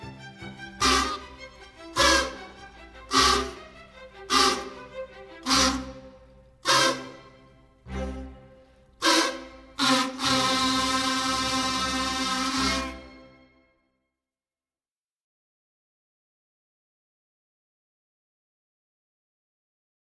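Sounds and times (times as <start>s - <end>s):
kazoo: 0.7s - 7.4s, 9.0s - 13.4s.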